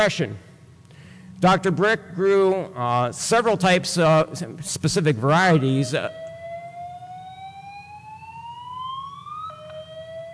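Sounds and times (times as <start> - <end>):
speech: 0.0 - 0.5, 1.4 - 6.2
fire drill alarm siren: 5.3 - 10.3.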